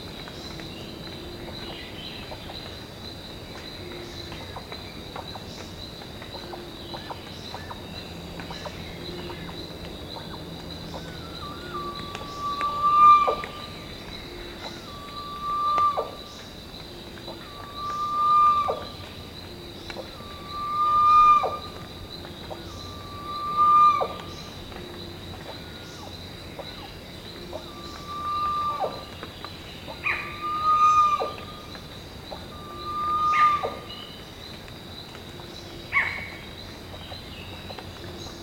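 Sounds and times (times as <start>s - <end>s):
bird whistled calls: 11.0s - 13.8s, 14.8s - 16.2s, 17.5s - 19.0s, 20.2s - 21.7s, 22.8s - 24.5s, 27.7s - 29.1s, 30.0s - 31.7s, 32.5s - 34.1s.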